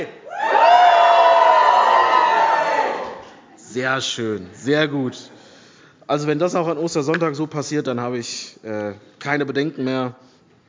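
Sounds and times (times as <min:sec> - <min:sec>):
crowd cheering: 0:00.2 - 0:03.3
speech: 0:03.7 - 0:05.4, 0:06.1 - 0:10.3.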